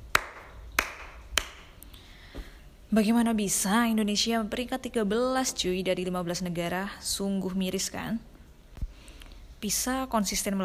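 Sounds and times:
applause, clapping hands: 0.1 - 1.7
speech: 2.9 - 8.3, 9.6 - 10.6.

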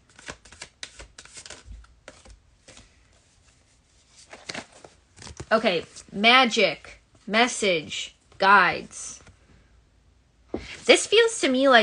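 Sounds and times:
tarot cards being shuffled for a card reading: 0.0 - 6.1
speech: 5.5 - 9.0, 10.9 - 11.8.

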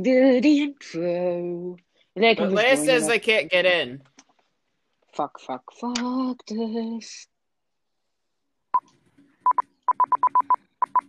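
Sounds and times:
speech: 0.0 - 4.1, 5.2 - 7.3
soundboard short electronic beeps: 8.8 - 11.0.

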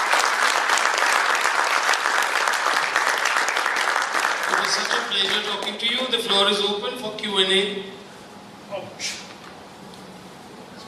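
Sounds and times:
big round of applause: 0.0 - 5.8
speech: 4.7 - 8.0, 8.7 - 9.2.

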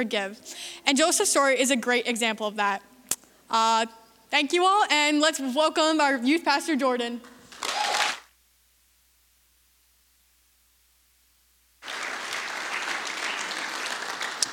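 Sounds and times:
speech: 0.0 - 2.9, 3.5 - 7.3
church congregation applauding speakers: 7.5 - 8.3, 11.8 - 14.5.

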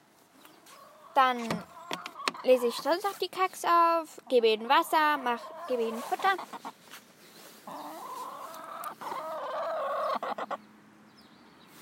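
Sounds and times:
hen clucking and singing a warbling call: 0.6 - 3.1, 4.4 - 10.7
speech: 1.2 - 1.7, 2.4 - 6.7.

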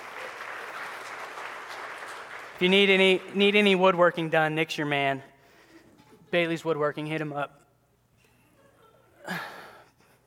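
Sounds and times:
audience applause: 0.0 - 3.3
speech: 2.6 - 5.3, 6.3 - 7.6.

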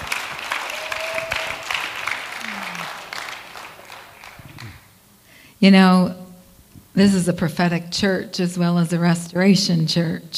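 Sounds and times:
audience clapping: 0.0 - 5.0
speech: 5.6 - 6.2, 7.0 - 10.3.

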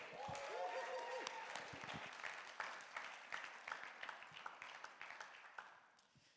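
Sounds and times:
crowd cheer: 0.0 - 2.7
audience applause: 0.0 - 5.7.

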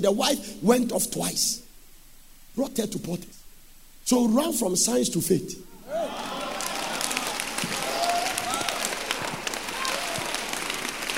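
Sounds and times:
speech: 0.0 - 1.6, 2.6 - 3.4, 4.0 - 6.2
audience clapping: 6.0 - 11.1.

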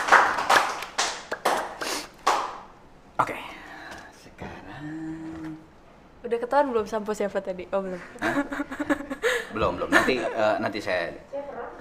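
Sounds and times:
audience clapping: 0.0 - 2.7
speech: 6.3 - 8.7, 9.6 - 11.4
laughter: 8.1 - 10.6.

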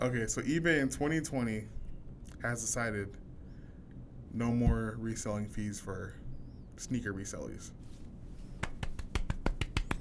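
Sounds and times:
speech: 0.0 - 1.8, 2.4 - 3.2, 4.3 - 6.2, 6.8 - 7.8
sharp finger snaps as applause: 8.6 - 9.9.

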